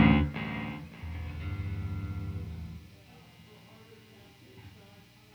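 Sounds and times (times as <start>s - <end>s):
bass guitar through amp recorded with M160 microphone: 0.0s - 2.8s.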